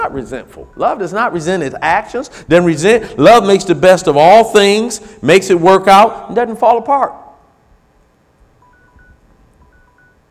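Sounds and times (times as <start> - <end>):
electronic device beeping in two-tone chirps: 0.0 - 2.1, 8.6 - 10.2
speech: 0.0 - 7.2.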